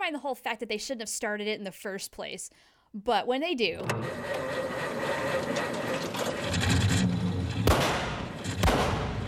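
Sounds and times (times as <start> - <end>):
speech: 0.1 - 7.0
truck backfiring: 4.0 - 9.2.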